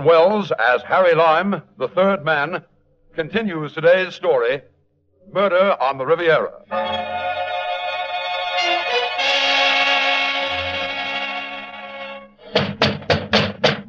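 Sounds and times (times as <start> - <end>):
speech: 0.0 - 4.7, 5.3 - 7.3
sustained tonal passage: 6.7 - 12.5
police pounding on a door in a radio drama: 12.6 - 13.8.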